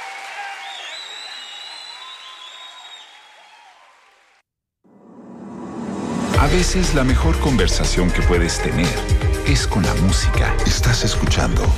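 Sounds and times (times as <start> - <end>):
large audience clapping: 0.0 - 4.4
scattered cheers and whistles: 0.0 - 4.4
speech: 6.4 - 11.7.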